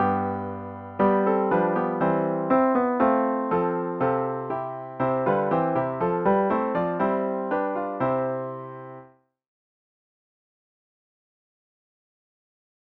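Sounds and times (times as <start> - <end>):
Easter hymn on piano with intro: 0.0 - 9.1.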